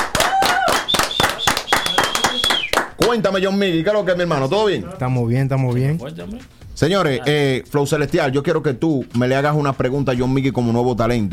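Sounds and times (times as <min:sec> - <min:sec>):
audience applause: 0:00.0 - 0:03.0
speech: 0:03.1 - 0:11.3.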